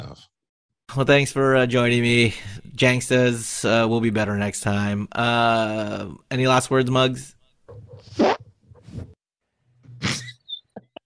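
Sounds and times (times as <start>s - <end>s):
speech: 0.2s - 8.3s
fart sound effect: 8.0s - 9.1s, 10.0s - 10.4s.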